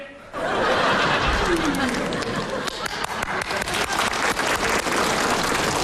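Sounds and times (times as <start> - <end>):
laughter: 0.3 - 4.4
applause: 1.3 - 5.8.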